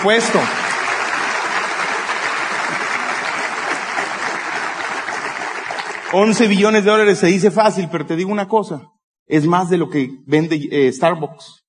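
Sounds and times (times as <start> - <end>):
speech: 0.0 - 0.7, 6.1 - 11.6
audience applause: 0.0 - 7.2.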